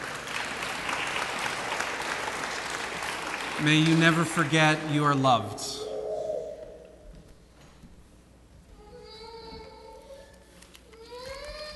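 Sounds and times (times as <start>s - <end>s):
round of applause: 0.0s - 5.4s
speech: 3.6s - 5.8s.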